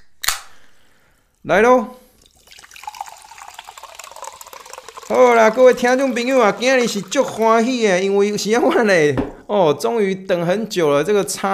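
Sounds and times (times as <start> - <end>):
speech: 1.4 - 2.0, 5.1 - 11.5
sparkling water fizzing: 2.2 - 8.5.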